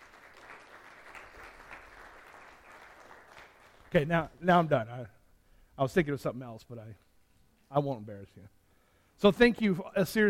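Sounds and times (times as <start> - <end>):
audience applause: 0.0 - 4.1
speech: 3.9 - 5.2, 5.8 - 7.0, 7.7 - 8.6, 9.2 - 10.2.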